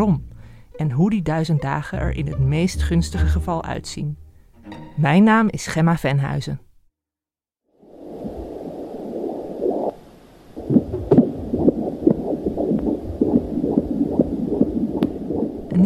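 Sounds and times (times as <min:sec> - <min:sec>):
speech: 0:00.0 - 0:06.7
rumble: 0:08.0 - 0:15.8
fetal heartbeat via Doppler: 0:10.6 - 0:15.8.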